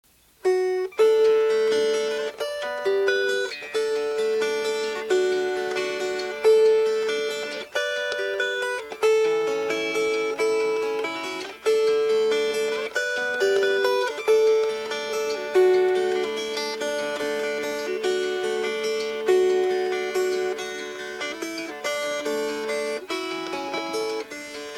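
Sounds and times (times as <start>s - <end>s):
fingerpicked strings: 0.4s - 24.7s.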